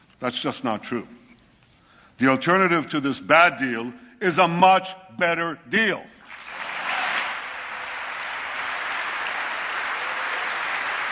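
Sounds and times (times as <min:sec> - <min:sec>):
speech: 0:00.2 - 0:01.2, 0:02.2 - 0:06.1
applause in Congress during speech: 0:06.2 - 0:11.0.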